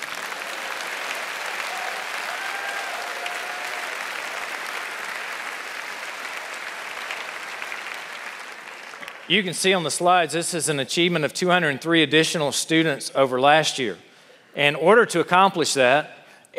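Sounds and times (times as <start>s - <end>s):
audience applause: 0.0s - 9.3s
speech: 9.3s - 16.5s.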